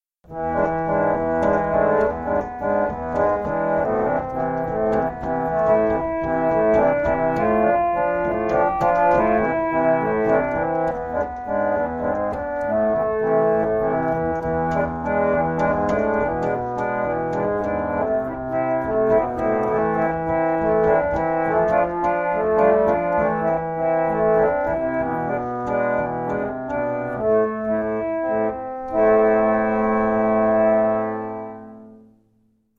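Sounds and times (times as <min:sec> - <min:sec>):
harmonium solo: 0:00.3 - 0:32.1.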